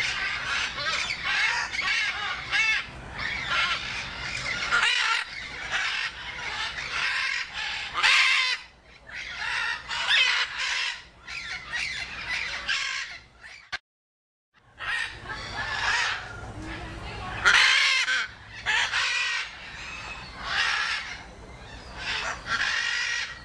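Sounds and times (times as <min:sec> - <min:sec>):
macaw screeching and hoarse calling: 0:00.0 - 0:13.7, 0:14.8 - 0:16.4, 0:17.3 - 0:23.4.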